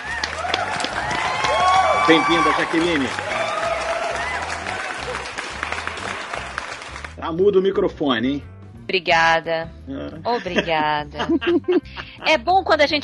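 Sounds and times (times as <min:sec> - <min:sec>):
round of applause: 0:00.0 - 0:07.2
speech: 0:02.1 - 0:03.3, 0:07.3 - 0:13.0
laughter: 0:10.3 - 0:12.2.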